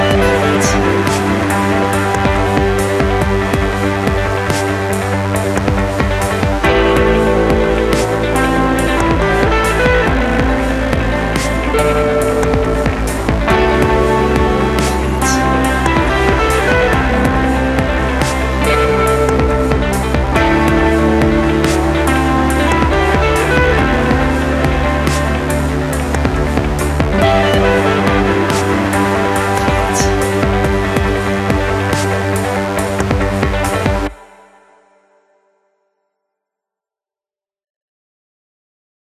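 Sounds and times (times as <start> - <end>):
electronic music: 0.0 - 34.6.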